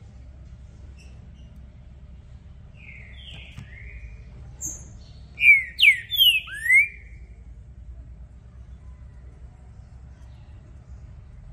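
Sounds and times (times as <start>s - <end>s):
green-winged saltator song of rich slurred whistles: 4.6s - 7.2s.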